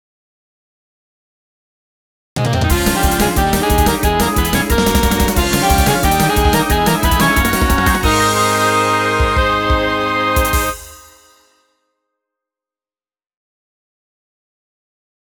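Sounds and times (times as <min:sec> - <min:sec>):
jingle: 0:02.7 - 0:11.6.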